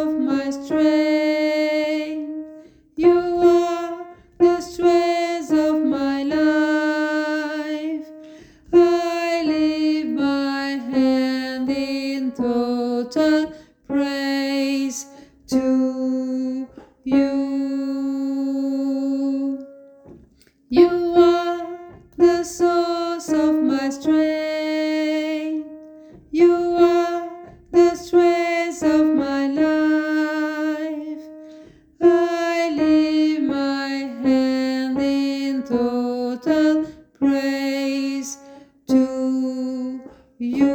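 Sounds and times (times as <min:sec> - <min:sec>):
alto voice: 0:00.0 - 0:20.0, 0:20.7 - 0:40.7.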